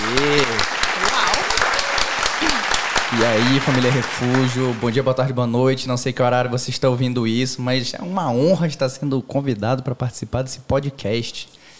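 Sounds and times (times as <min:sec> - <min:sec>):
murmuring voices: 0:00.0 - 0:04.1
audience clapping: 0:00.0 - 0:05.4
speech: 0:03.2 - 0:11.6
voice calling out: 0:08.0 - 0:08.7.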